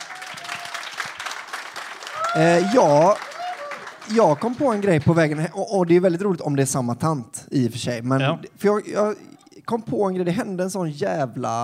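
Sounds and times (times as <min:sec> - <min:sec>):
audience applause: 0:00.0 - 0:05.6
speech: 0:02.3 - 0:03.3, 0:04.1 - 0:11.6.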